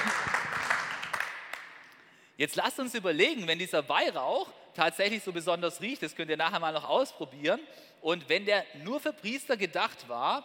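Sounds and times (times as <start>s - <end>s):
audience applause: 0.0s - 1.8s
speech: 2.4s - 10.4s.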